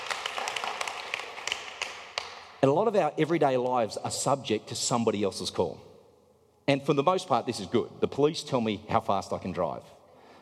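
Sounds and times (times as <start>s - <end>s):
audience hand clapping: 0.0s - 2.6s
speech: 2.6s - 5.9s, 6.7s - 10.0s.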